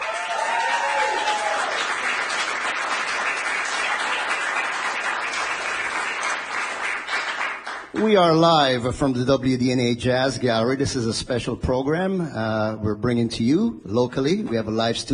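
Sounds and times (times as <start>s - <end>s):
live studio audience applause at the WDNA Jazz Gallery: 0.0s - 8.0s
speech: 8.0s - 15.1s.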